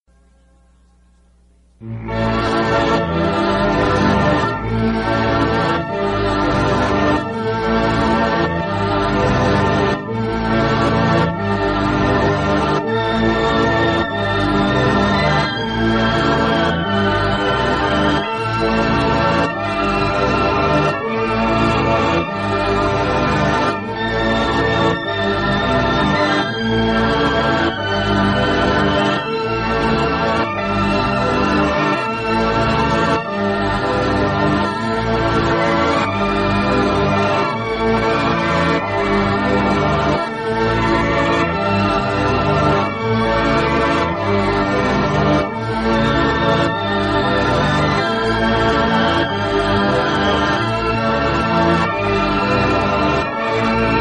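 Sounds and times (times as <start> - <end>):
instrumental music: 0.1 - 54.0.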